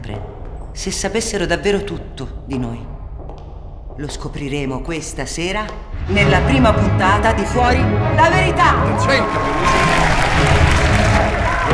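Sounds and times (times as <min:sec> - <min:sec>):
speech: 0:00.1 - 0:02.9, 0:04.0 - 0:10.8
studio audience applause: 0:08.7 - 0:11.7.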